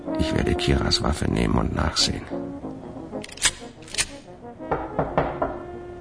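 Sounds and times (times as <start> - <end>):
speech: 0.2 - 2.4
knocks on a door: 4.7 - 5.7.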